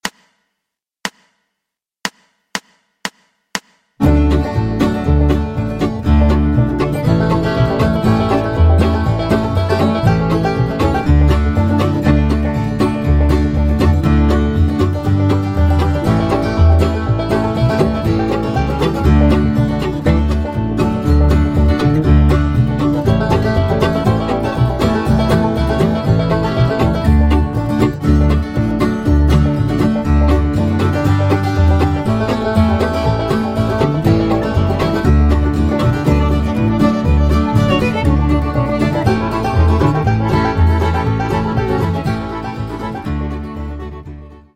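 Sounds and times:
Chinese breakdown tune in D: 4.0s - 43.4s.

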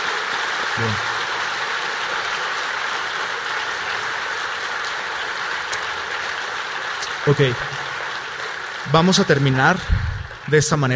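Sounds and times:
audience applause: 0.0s - 10.9s
speech: 0.8s - 1.1s, 7.3s - 7.8s, 8.9s - 10.9s.

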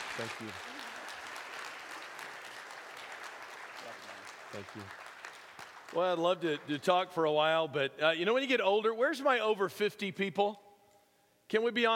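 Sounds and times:
faint audience applause welcoming a speaker: 0.0s - 7.0s
speech: 0.2s - 0.8s, 3.8s - 5.0s, 5.9s - 10.6s, 11.5s - 11.9s.

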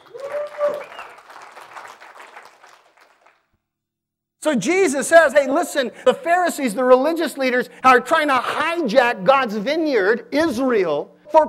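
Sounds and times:
audience cheering and applauding: 0.0s - 3.4s
speech: 4.4s - 11.4s.

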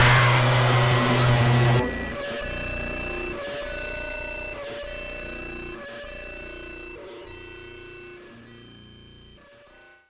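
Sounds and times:
hit: 0.0s - 1.9s.

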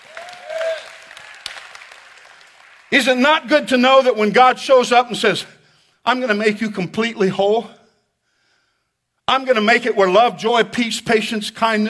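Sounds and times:
audience clapping hands: 0.0s - 3.2s
speech: 2.9s - 7.8s, 9.3s - 11.8s.

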